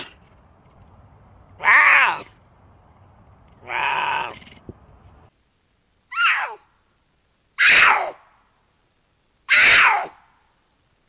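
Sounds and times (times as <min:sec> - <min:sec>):
cougar giving short harsh cries: 0:01.6 - 0:02.4, 0:03.6 - 0:04.6, 0:06.1 - 0:06.6, 0:07.6 - 0:08.2, 0:09.5 - 0:10.2.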